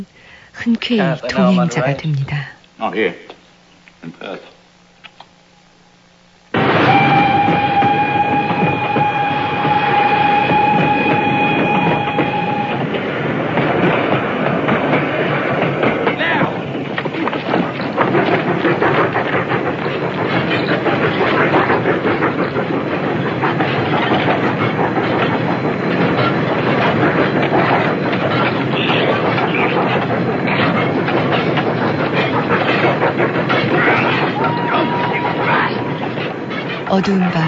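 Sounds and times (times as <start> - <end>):
speech: 0.0 - 3.4, 4.0 - 4.6, 37.0 - 37.4
running train clattering on rails: 6.6 - 37.4.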